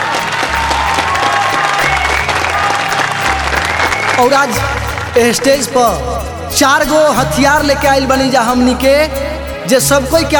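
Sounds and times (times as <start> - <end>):
audience applause: 0.0 - 5.8
speech: 4.2 - 10.3.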